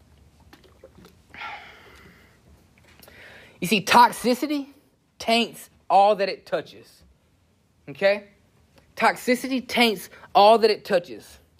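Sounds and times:
person sipping water: 0:00.2 - 0:03.2
speech: 0:03.6 - 0:07.0, 0:07.9 - 0:08.4, 0:09.0 - 0:11.4.

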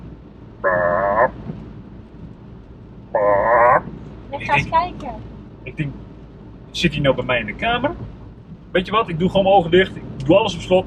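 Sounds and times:
toad croaking at night: 0:00.6 - 0:01.4, 0:03.2 - 0:03.8
speech: 0:04.4 - 0:06.0, 0:06.8 - 0:08.1, 0:08.7 - 0:10.8.

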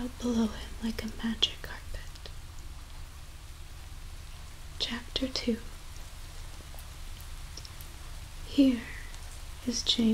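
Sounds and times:
speech: 0:00.0 - 0:01.8, 0:04.8 - 0:05.7, 0:08.6 - 0:08.9, 0:09.6 - 0:10.1
person whispering: 0:00.0 - 0:02.3, 0:04.8 - 0:05.6, 0:08.5 - 0:10.1
soft rain: 0:00.0 - 0:10.1.

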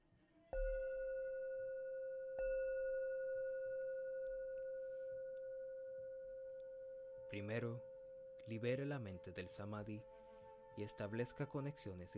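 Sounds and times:
meditation bell struck: 0:00.5 - 0:12.1
speech: 0:07.3 - 0:10.2, 0:10.8 - 0:12.1.

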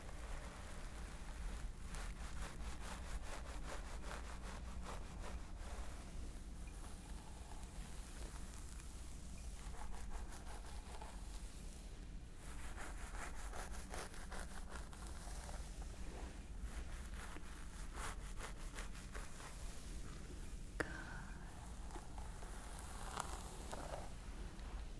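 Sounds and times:
scalp massage rubbing and scratching: 0:00.0 - 0:11.8, 0:12.4 - 0:20.5, 0:21.5 - 0:24.9.

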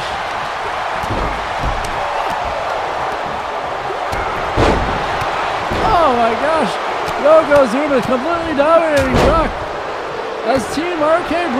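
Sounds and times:
arena crowd noise: 0:00.0 - 0:11.5
wrestling slam thud from the video game WWE 2K23: 0:00.2 - 0:08.2, 0:08.9 - 0:09.8
speech: 0:06.1 - 0:09.6, 0:10.4 - 0:11.5.

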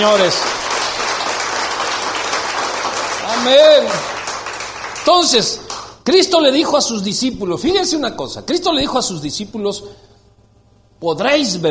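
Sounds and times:
speech: 0:00.0 - 0:00.8, 0:03.4 - 0:04.2, 0:05.0 - 0:10.1, 0:11.0 - 0:11.6
church congregation clapping: 0:00.0 - 0:06.0.

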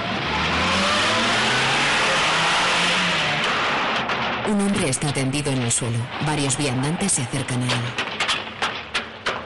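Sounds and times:
car driving away: 0:00.0 - 0:04.4
speech: 0:04.5 - 0:08.1.

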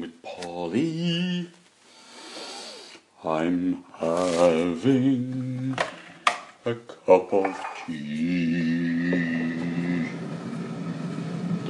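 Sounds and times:
speech: 0:00.0 - 0:01.6, 0:03.2 - 0:05.9, 0:06.6 - 0:09.4
kettle boiling: 0:08.6 - 0:11.6.

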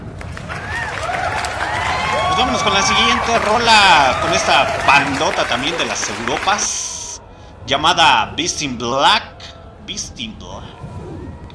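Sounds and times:
applause sound effect: 0:00.0 - 0:07.2
speech: 0:02.4 - 0:06.9, 0:07.7 - 0:09.3, 0:09.9 - 0:10.8.

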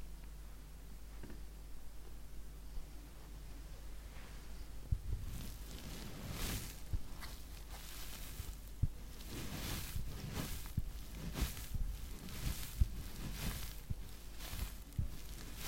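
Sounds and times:
faint low hum: 0:00.0 - 0:15.6
face massage rubbing and brushing strokes: 0:04.0 - 0:15.6.

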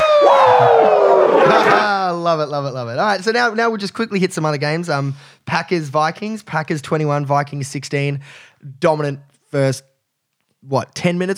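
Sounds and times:
wrestler's falling woo shout: 0:00.0 - 0:02.0
crowd-like roaring noise: 0:00.0 - 0:02.1
speech: 0:02.2 - 0:09.9, 0:10.6 - 0:11.3.

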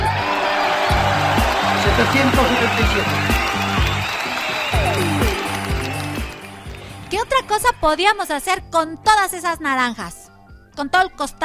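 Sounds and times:
audience applause: 0:00.0 - 0:07.2
speech: 0:02.0 - 0:03.5, 0:07.5 - 0:10.2, 0:10.8 - 0:11.4.

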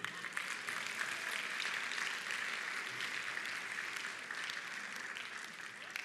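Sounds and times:
crowd clapping: 0:00.0 - 0:06.0.

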